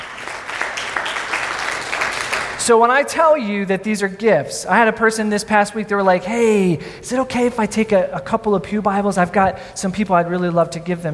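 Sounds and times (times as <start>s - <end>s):
church congregation clapping for God: 0.0s - 2.7s
speech: 2.6s - 11.1s.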